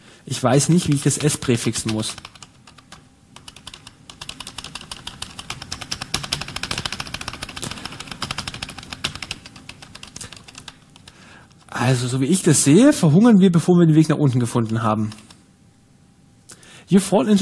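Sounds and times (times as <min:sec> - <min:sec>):
speech: 0:00.3 - 0:02.4, 0:11.9 - 0:15.3, 0:16.9 - 0:17.4
typing on a computer keyboard entering commands into a text adventure game: 0:00.6 - 0:11.8, 0:14.4 - 0:15.4.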